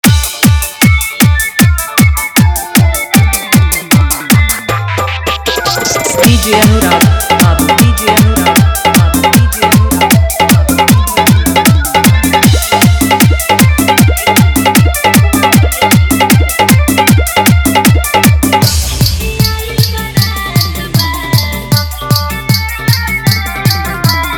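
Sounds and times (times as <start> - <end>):
dholki bass dance mix: 0.0 - 24.3.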